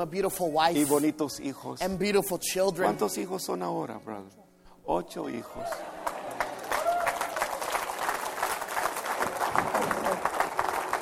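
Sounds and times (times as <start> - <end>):
speech: 0.0 - 6.1
church congregation applauding: 5.5 - 11.0.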